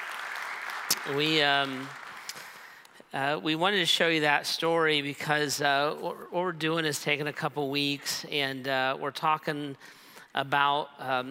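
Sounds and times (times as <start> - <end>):
audience applause: 0.0 - 2.8
speech: 1.0 - 2.0, 3.1 - 11.3.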